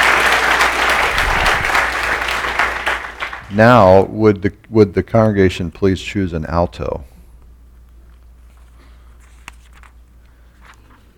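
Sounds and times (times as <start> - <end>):
audience clapping: 0.0 - 3.9
speech: 3.6 - 7.1.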